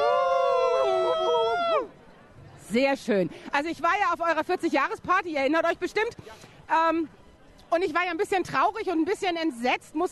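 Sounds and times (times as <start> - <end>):
crowd screaming loudly: 0.0 - 1.9
speech: 2.7 - 10.0.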